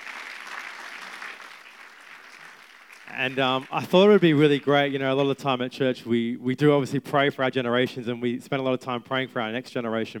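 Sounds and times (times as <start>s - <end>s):
audience applauding: 0.0s - 4.9s
speech: 3.1s - 10.1s.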